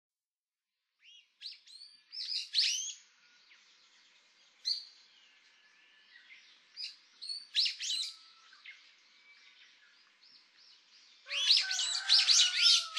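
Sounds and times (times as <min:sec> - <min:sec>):
brown-eared bulbul harsh screechy calls on Hahajima: 0:01.0 - 0:03.0, 0:06.8 - 0:08.6, 0:11.3 - 0:12.9.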